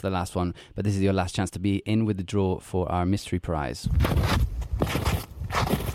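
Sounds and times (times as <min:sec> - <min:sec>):
speech: 0:00.0 - 0:05.8
footsteps of someone walking in snow: 0:04.0 - 0:05.9.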